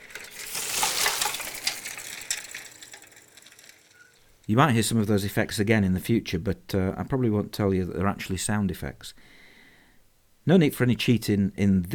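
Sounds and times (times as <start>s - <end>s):
old bicycle rattling and clinking: 0.0s - 4.9s
speech: 4.5s - 9.4s, 10.4s - 11.9s.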